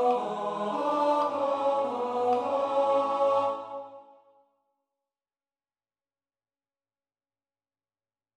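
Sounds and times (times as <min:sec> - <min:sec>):
tenor singing: 0:00.0 - 0:04.2.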